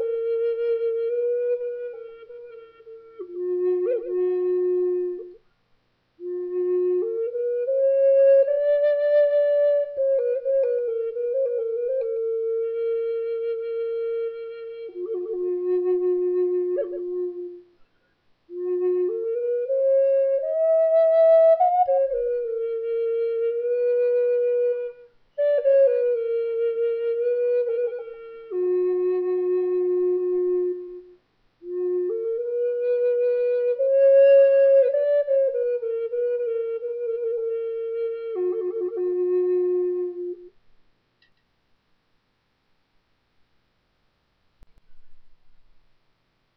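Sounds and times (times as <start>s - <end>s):
walnut flutes playing a Middle Eastern scale: 0.0s - 5.4s, 6.2s - 17.8s, 18.5s - 40.6s.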